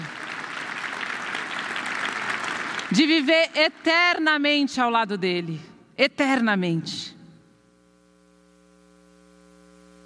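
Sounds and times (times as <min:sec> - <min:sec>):
audience applause: 0:00.0 - 0:03.3
speech: 0:02.9 - 0:07.2.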